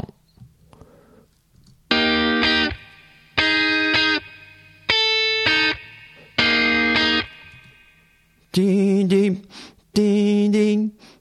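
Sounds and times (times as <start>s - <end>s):
distorted electric guitar notes bending up and down: 1.9s - 8.4s
speech: 8.6s - 10.1s.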